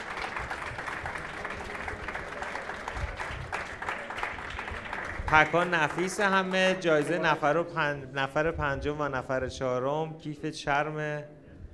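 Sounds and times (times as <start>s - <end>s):
audience applause: 0.0s - 7.4s
speech: 5.3s - 11.4s.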